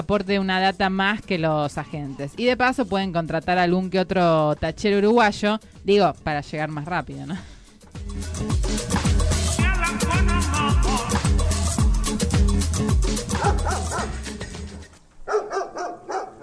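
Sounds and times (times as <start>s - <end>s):
speech: 0.0s - 7.5s
loud rhythmic band music with a steady bass beat: 8.0s - 14.9s
dog barking and yipping: 13.3s - 14.2s, 15.2s - 16.4s.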